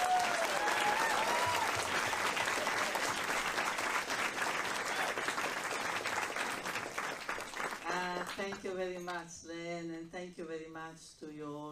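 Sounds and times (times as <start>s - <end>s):
audience applause welcoming a speaker at a talk in San Francisco: 0.0s - 8.6s
speech: 8.7s - 11.7s.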